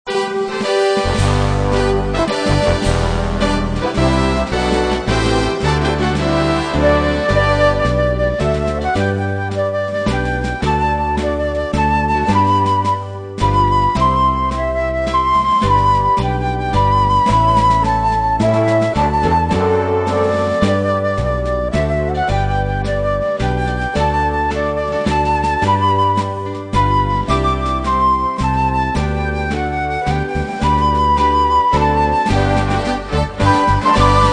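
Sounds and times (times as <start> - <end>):
instrumental hymns: 0.1 - 34.3.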